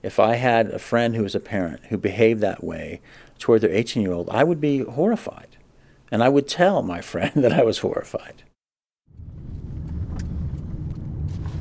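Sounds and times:
speech: 0.0 - 8.5
car driving: 9.1 - 11.5.

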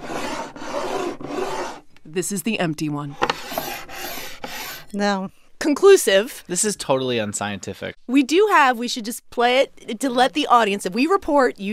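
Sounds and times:
ceramic mug with water sliding across a table: 0.0 - 1.8, 3.1 - 4.9
speech: 2.1 - 3.5, 4.9 - 11.7.

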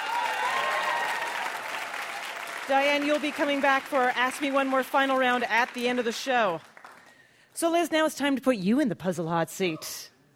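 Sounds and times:
audience applause: 0.0 - 7.1
speech: 2.7 - 6.7, 7.6 - 10.1.

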